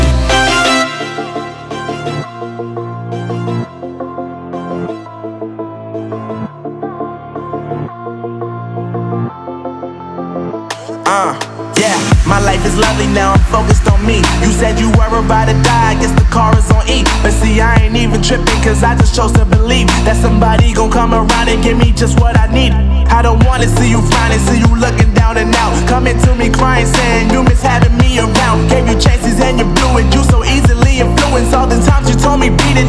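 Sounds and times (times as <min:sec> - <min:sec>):
trap beat: 0:00.0 - 0:03.8, 0:10.7 - 0:32.8.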